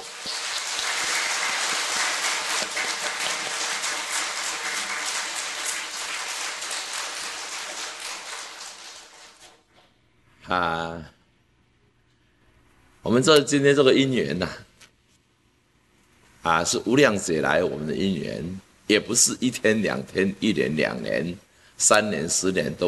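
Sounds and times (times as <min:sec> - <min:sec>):
large crowd clapping: 0:00.0 - 0:09.7
speech: 0:10.5 - 0:11.2, 0:13.1 - 0:14.7, 0:16.4 - 0:22.8.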